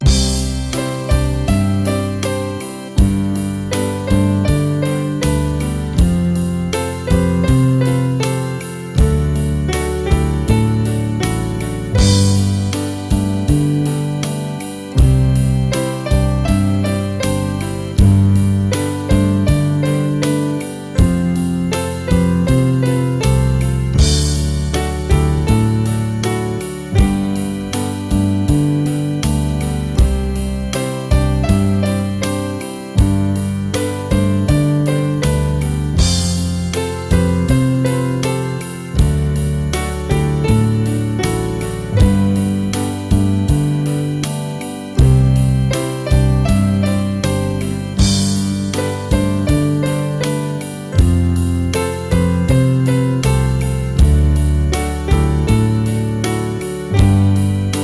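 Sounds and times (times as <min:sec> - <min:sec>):
piano: 0:00.0 - 0:57.8.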